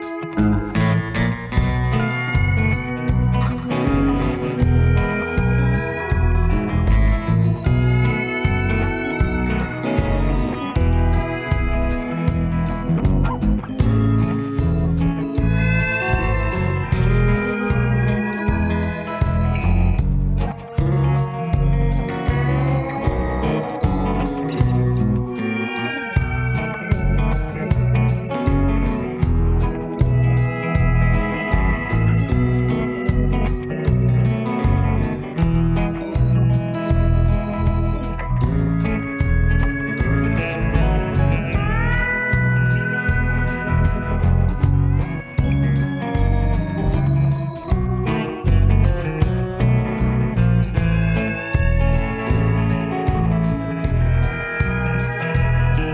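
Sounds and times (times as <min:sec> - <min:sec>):
diner music: 0:00.0 - 0:55.9.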